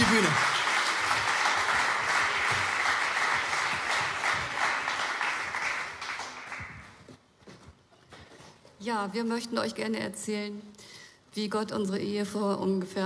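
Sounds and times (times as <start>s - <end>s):
audience applause: 0.0s - 7.0s
speech: 8.9s - 13.0s.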